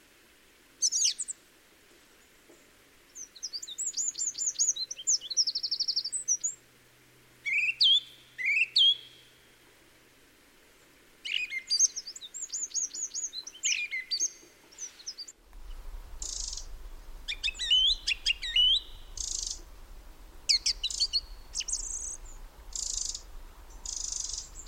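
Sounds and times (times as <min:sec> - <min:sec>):
song thrush song: 0:03.2 - 0:06.6, 0:07.4 - 0:09.3, 0:11.2 - 0:24.6
steady low rumble: 0:15.4 - 0:24.6.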